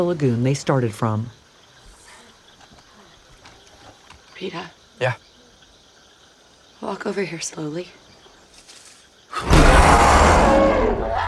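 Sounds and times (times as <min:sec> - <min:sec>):
speech: 0:00.0 - 0:01.4, 0:04.4 - 0:05.2, 0:06.8 - 0:08.0, 0:09.4 - 0:11.2
baboon-like monkey roaring: 0:09.3 - 0:11.2.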